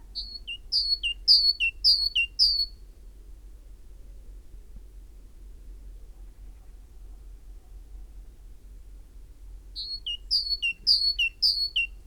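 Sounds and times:
Great tit singing: 0:00.2 - 0:02.7, 0:09.8 - 0:11.9.

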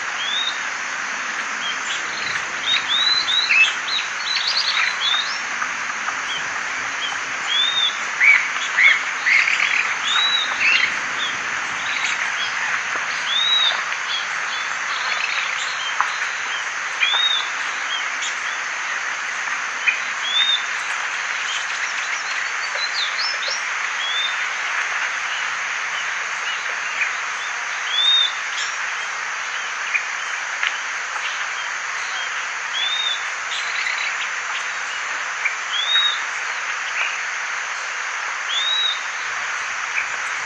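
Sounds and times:
constant heavy hissing noise: 0:00.0 - 0:40.4
bird calling with high arched whistles: 0:02.1 - 0:05.4, 0:07.5 - 0:10.9.

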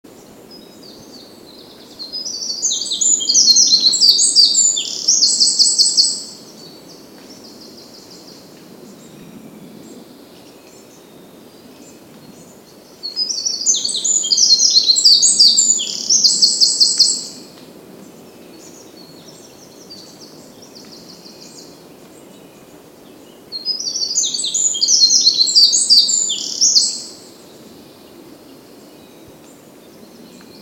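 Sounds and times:
hiss: 0:00.0 - 0:30.6
Eurasian wren singing: 0:00.6 - 0:06.4, 0:13.0 - 0:17.4, 0:23.6 - 0:27.3.

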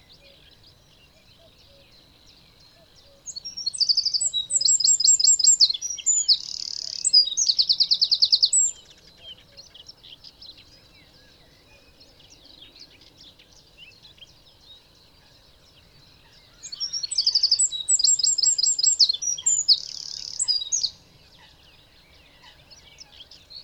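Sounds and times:
Eurasian wren song: 0:03.2 - 0:10.7, 0:16.2 - 0:21.5, 0:22.3 - 0:23.6.

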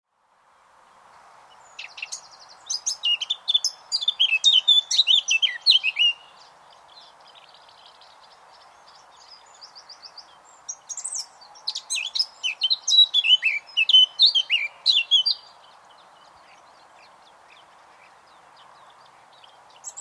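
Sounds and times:
Eurasian blackcap singing: 0:01.7 - 0:19.9.

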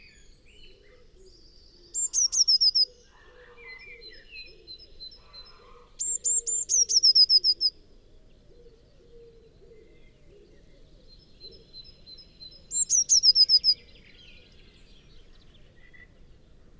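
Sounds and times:
Eurasian blue tit Cyanistes caeruleus song: 0:00.0 - 0:07.9, 0:08.8 - 0:16.7.

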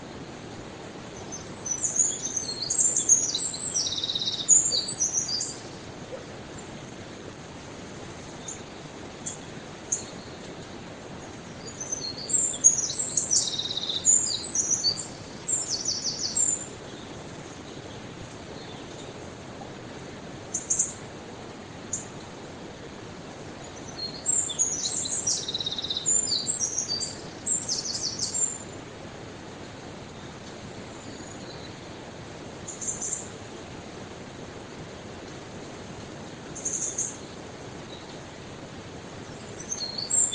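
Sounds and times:
soft hiss: 0:00.0 - 0:40.3
Eurasian wren singing twittering trills: 0:01.1 - 0:06.3, 0:11.5 - 0:17.2, 0:23.8 - 0:28.6, 0:32.7 - 0:33.3, 0:36.5 - 0:38.2, 0:39.4 - 0:40.3.

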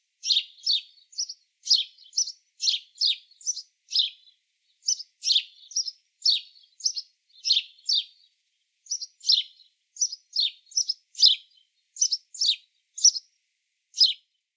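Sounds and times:
house sparrow chirping: 0:00.2 - 0:13.3, 0:14.0 - 0:14.3.

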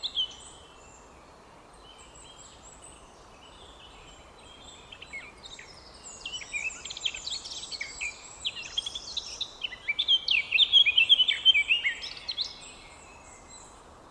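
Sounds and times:
Eurasian blackcap warbling song: 0:00.0 - 0:00.6, 0:03.8 - 0:13.7
small birds calling in thin high notes: 0:00.0 - 0:13.9.

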